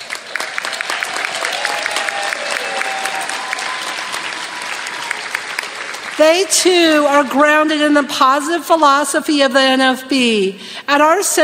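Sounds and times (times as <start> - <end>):
audience applause: 0.0 - 6.5
speech: 6.2 - 11.4.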